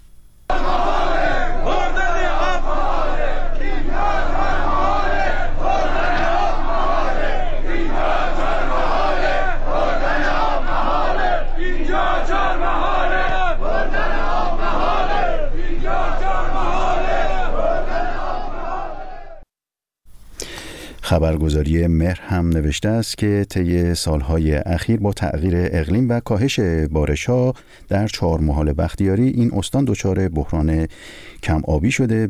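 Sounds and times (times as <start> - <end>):
protesters chanting at a demonstration: 0.5 - 19.4
speech: 21.5 - 32.2.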